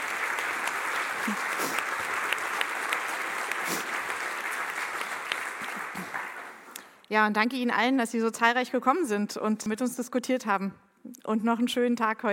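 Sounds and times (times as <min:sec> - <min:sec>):
audience applause: 0:00.0 - 0:06.8
speech: 0:01.2 - 0:01.8, 0:07.1 - 0:12.3.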